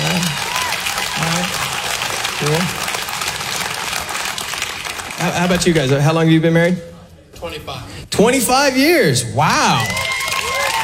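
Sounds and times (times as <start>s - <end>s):
audience applause: 0.0s - 6.0s, 9.8s - 10.8s
speech: 5.4s - 6.9s, 7.5s - 10.0s.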